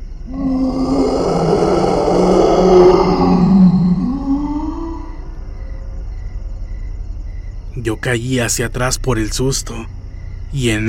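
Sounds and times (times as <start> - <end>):
horrible animal-like howl: 0.3 - 5.4
speech: 8.0 - 10.8.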